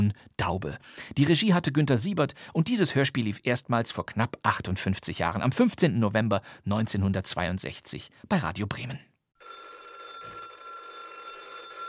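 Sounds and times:
speech: 0.0 - 9.6
Radio Bremen radio-play telephone ringing: 9.4 - 11.8.

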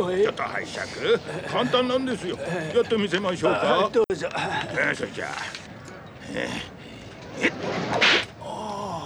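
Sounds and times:
speech: 0.0 - 5.6, 6.3 - 6.8, 7.4 - 8.3
noise: 0.0 - 9.0
whip cracking: 7.5 - 8.3.

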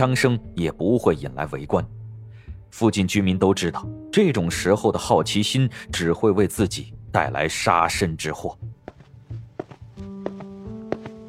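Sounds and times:
speech: 0.0 - 2.0, 2.7 - 8.8
footsteps approaching at night through a cluttered street: 8.8 - 11.2.

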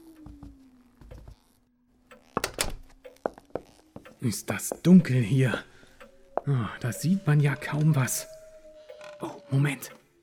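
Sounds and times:
door handle and latch clattering: 2.4 - 2.8
speech: 4.2 - 5.7, 6.4 - 8.3, 9.2 - 10.0
low steady drone: 4.2 - 10.2.

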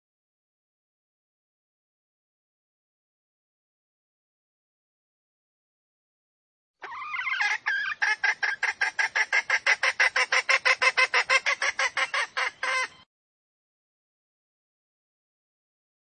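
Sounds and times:
female junglefowl squawking lure call: 6.8 - 13.1.

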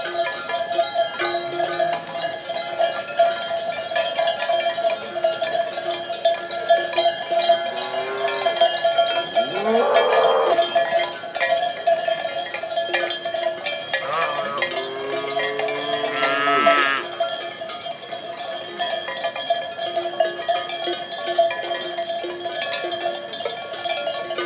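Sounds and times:
cowbells jangling: 0.0 - 24.4
cow lowing: 7.5 - 10.8, 14.0 - 17.2.

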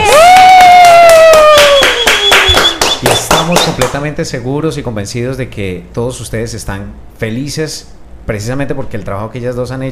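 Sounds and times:
crowd applauding strongly: 0.0 - 4.0
speech: 4.0 - 9.9.

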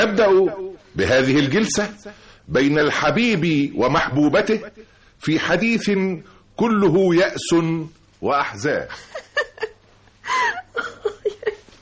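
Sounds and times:
speech: 0.0 - 9.7
woman crying and sobbing: 8.9 - 11.8.

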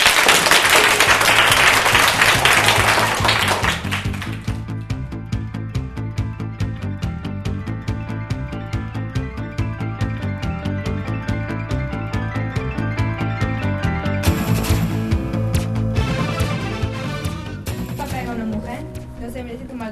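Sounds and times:
schoolchildren of the Colegio Virgen de Gracia school applauding loudly: 0.0 - 4.6
rhythmic music with a regular plucked beat: 0.4 - 19.9.

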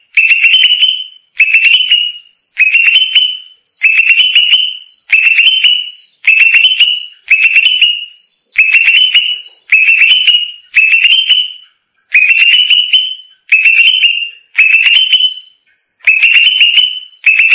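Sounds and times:
greater green leafbird singing: 0.0 - 17.5.

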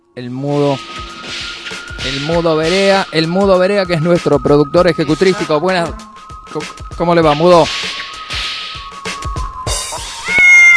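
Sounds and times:
speech: 0.2 - 7.8
cat meowing: 10.1 - 10.7.

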